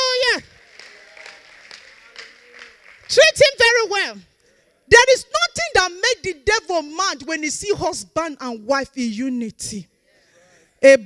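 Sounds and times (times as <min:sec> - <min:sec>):
audience clapping: 0:00.0 - 0:03.6
speech: 0:03.4 - 0:04.3, 0:05.9 - 0:09.9, 0:10.8 - 0:11.0.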